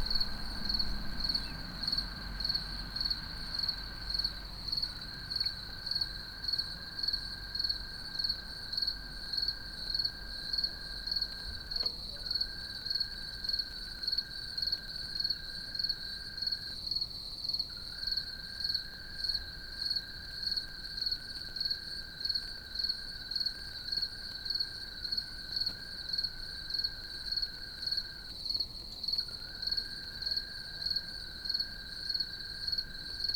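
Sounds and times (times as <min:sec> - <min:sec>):
faint low rumble: 0:00.0 - 0:04.8
lower continuous tone: 0:00.0 - 0:06.2
crickets chirping: 0:00.0 - 0:33.3.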